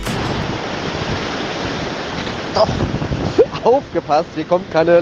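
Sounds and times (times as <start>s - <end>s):
Atlantic ocean waves breaking: 0.1s - 3.4s
speech: 2.5s - 2.9s, 3.7s - 4.9s.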